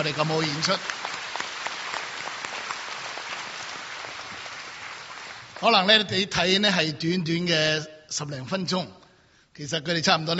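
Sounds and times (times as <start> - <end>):
speech: 0.0 - 1.1, 5.6 - 9.0, 9.6 - 10.3
crowd applause: 0.0 - 5.7.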